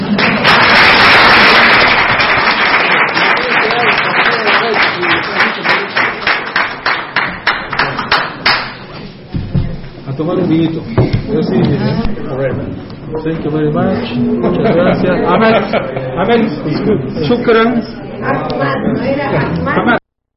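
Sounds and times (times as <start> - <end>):
crowd applause: 0.0 - 8.9
murmur of voices: 2.8 - 20.0
speech: 10.5 - 20.0
laughter: 14.3 - 17.4.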